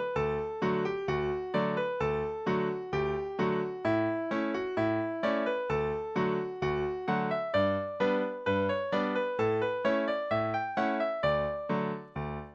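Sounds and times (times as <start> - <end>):
music track at 65 bpm: 0.0 - 12.5.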